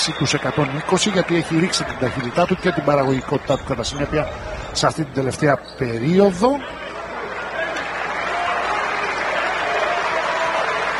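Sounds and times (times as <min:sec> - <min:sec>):
crowd applauding a substituted basketball player: 0:00.0 - 0:04.0, 0:06.8 - 0:10.9
speech: 0:00.0 - 0:06.8
faint murmur of voices: 0:00.0 - 0:09.9.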